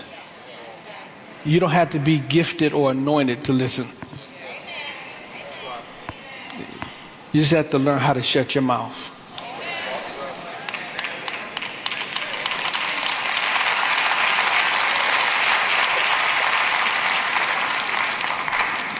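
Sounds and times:
speech: 1.4 - 4.0, 7.3 - 9.1
audience clapping: 10.3 - 18.9.

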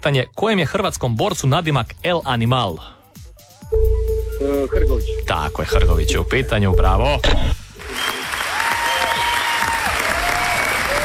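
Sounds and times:
speech: 0.0 - 3.0, 3.8 - 8.0
radio studio technical crew clapping: 7.8 - 11.0.

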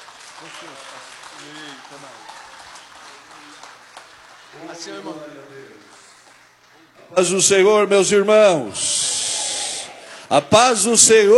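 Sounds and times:
audience applause: 0.0 - 6.6
speech: 0.4 - 2.4, 4.5 - 6.0, 7.0 - 9.1, 10.3 - 11.3.

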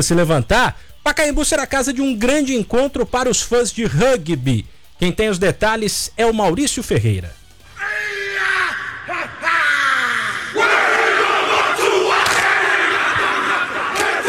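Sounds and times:
speech: 0.0 - 7.4
Maori haka war chant by rugby team: 7.8 - 14.2.

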